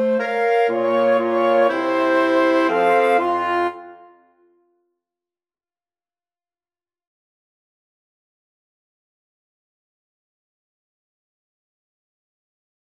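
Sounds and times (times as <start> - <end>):
flexible mixed ensemble of four players: 0.0 - 4.2.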